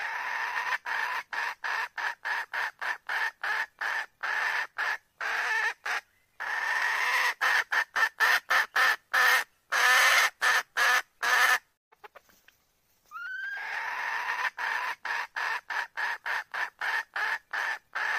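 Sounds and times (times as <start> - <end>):
red junglefowl hen cackling: 0.0 - 12.4, 13.1 - 18.1.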